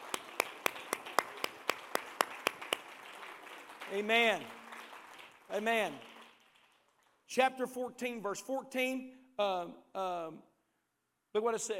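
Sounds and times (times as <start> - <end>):
audience clapping in unison: 0.0 - 7.3
speech: 3.9 - 4.6, 5.5 - 6.1, 7.3 - 10.5, 11.3 - 11.7.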